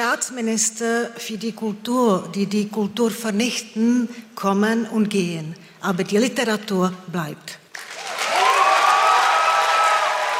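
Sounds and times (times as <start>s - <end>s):
speech: 0.1s - 7.9s
crowd cheering and applause for a speech: 7.7s - 10.3s
whoops and shouts: 8.0s - 10.3s.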